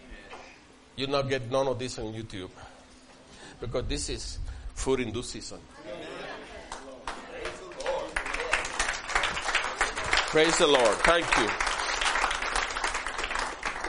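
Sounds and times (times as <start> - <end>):
speech: 1.0 - 2.7, 3.6 - 6.0, 10.3 - 11.7
audience applauding: 6.7 - 13.8.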